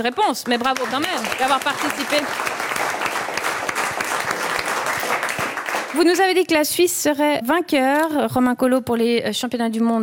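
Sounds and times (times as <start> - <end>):
speech: 0.0 - 2.8, 6.0 - 10.0
audience applause: 0.4 - 6.4.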